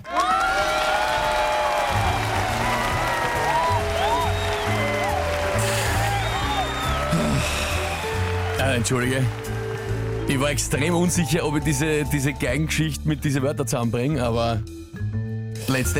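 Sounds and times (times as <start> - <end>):
cheering and applause: 0.0 - 12.0
speech: 8.8 - 9.6, 10.3 - 14.9, 15.7 - 15.9.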